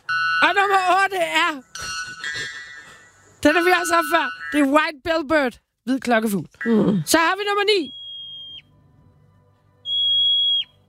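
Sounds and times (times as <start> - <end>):
speech: 0.5 - 1.8, 3.4 - 8.0
marmot whistle call: 7.8 - 8.7, 9.8 - 10.8.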